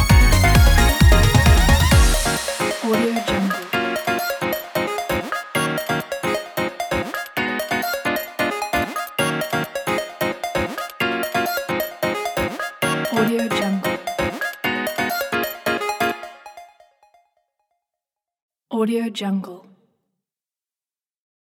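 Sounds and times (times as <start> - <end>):
Japanese electronic pop music: 0.0 - 16.8.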